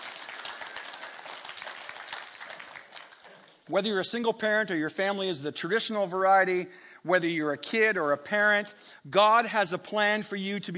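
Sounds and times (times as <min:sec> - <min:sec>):
audience applause: 0:00.0 - 0:03.7
speech: 0:03.7 - 0:10.7.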